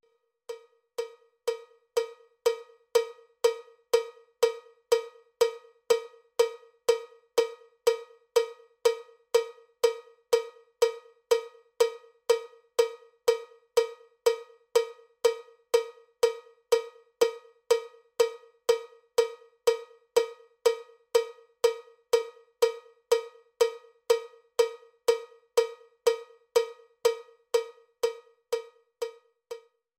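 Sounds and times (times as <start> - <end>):
cowbell click track: 0.0 - 29.8.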